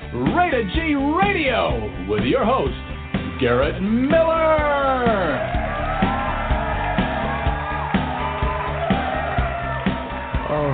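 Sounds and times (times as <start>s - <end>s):
speech: 0.1s - 5.6s
crowd cheering, whooping and yelling: 4.1s - 10.7s
regular pulsing beat: 4.5s - 10.5s.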